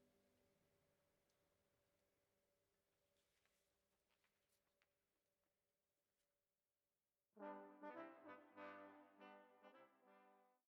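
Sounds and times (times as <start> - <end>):
chamber brass ensemble playing: 7.4 - 10.6.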